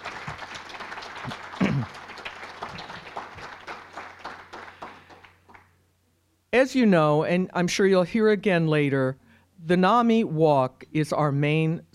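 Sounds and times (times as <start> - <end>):
audience applause: 0.0 - 5.7
speech: 6.6 - 11.9.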